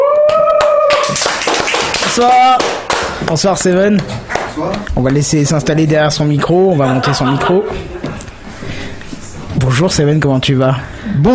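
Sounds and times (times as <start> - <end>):
audience applause: 0.0 - 3.2
speech: 2.2 - 8.0, 9.8 - 11.3
laughter: 6.6 - 8.3.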